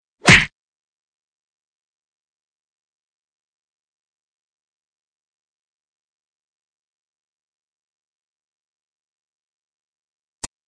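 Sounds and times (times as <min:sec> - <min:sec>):
fight sounds: 0:00.2 - 0:00.5.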